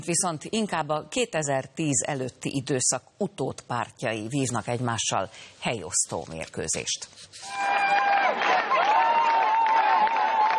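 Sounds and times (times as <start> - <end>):
speech: 0.0 - 8.4
crowd applauding and cheering: 7.5 - 10.5.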